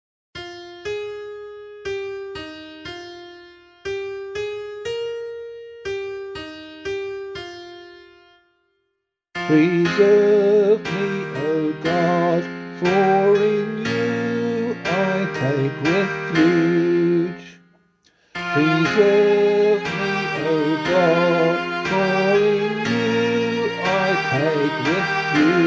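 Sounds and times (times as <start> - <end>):
vocal psalm singing: 9.4 - 17.6, 18.5 - 25.6.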